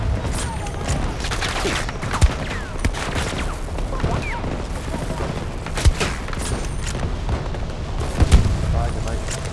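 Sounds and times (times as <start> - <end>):
gunfire from a video game: 0.0 - 9.5.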